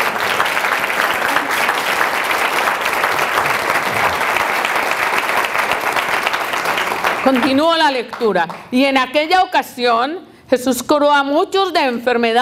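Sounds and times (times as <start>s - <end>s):
audience applause: 0.0s - 8.7s
speech: 7.3s - 12.4s.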